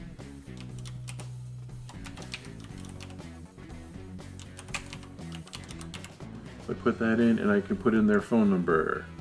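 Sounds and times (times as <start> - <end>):
typing an email address on a computer keyboard: 0.5 - 3.2, 4.3 - 6.2
speech: 6.7 - 9.1.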